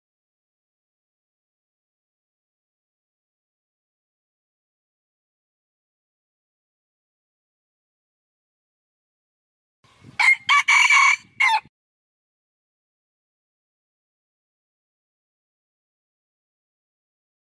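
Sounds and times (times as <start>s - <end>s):
red junglefowl crowing: 10.2s - 11.7s.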